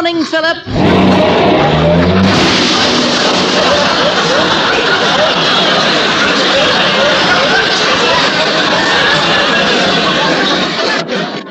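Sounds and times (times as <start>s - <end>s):
chatter: 0.0s - 11.4s
car engine running while backing out of a tight garage: 0.7s - 6.2s
laughter: 0.7s - 11.4s.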